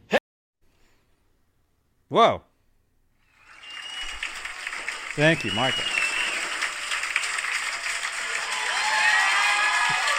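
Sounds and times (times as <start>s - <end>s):
speech: 2.1s - 2.5s, 5.2s - 6.0s
applause: 3.3s - 10.1s.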